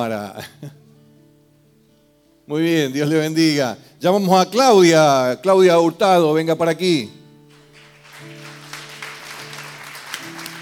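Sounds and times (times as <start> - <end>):
speech: 0.0 - 0.8, 2.5 - 7.2
audience applause: 7.8 - 10.6.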